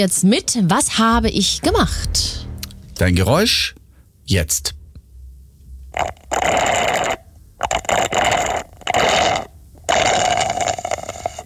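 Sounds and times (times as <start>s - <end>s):
speech: 0.0s - 4.8s, 6.0s - 6.2s
slurping a drink through a straw from a cup: 6.0s - 11.4s.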